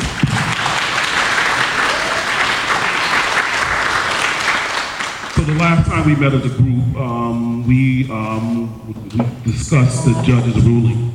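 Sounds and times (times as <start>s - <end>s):
audience applause: 0.0s - 5.8s
speech: 5.6s - 11.1s.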